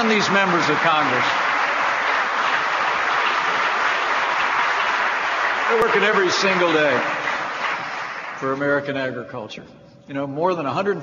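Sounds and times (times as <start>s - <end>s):
speech: 0.0s - 1.5s, 5.7s - 7.2s, 8.4s - 11.0s
audience applause: 0.0s - 8.6s.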